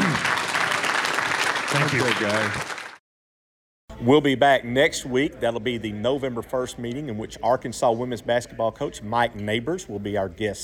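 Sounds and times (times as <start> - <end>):
audience applause: 0.0 - 3.0
speech: 1.8 - 2.7, 4.0 - 10.6.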